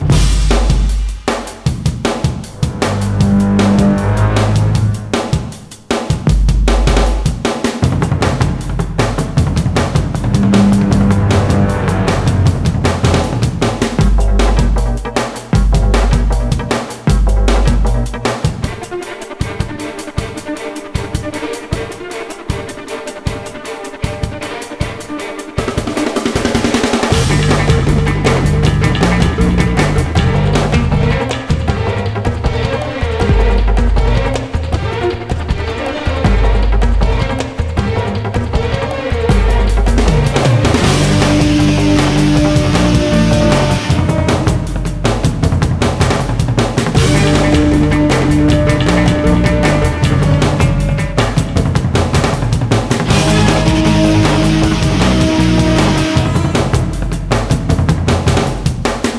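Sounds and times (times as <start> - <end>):
low combat music loop: 0.0 - 59.1.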